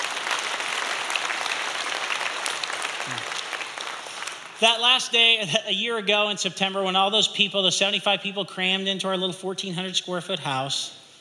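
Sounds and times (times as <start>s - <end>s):
audience applause: 0.0s - 5.0s
speech: 3.1s - 3.4s, 4.6s - 11.0s.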